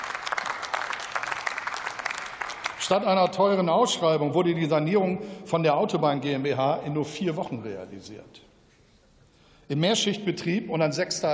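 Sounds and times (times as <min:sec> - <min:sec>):
audience applause during a speech in the German parliament: 0:00.0 - 0:02.9
speech: 0:02.9 - 0:08.5, 0:09.7 - 0:11.3.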